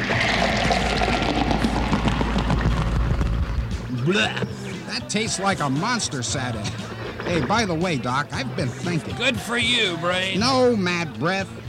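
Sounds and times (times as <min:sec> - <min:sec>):
punch pouring into a bowl: 0:00.0 - 0:02.2
low rumble: 0:00.0 - 0:04.0
speech: 0:04.1 - 0:11.6.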